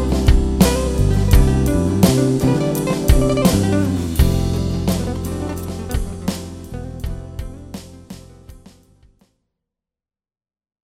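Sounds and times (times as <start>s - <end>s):
ballad: 0.0s - 8.6s.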